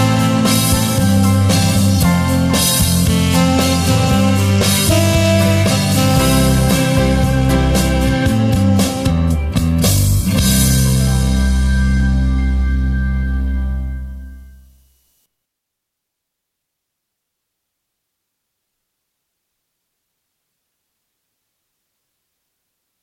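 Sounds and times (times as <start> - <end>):
piano: 0.0 - 14.8.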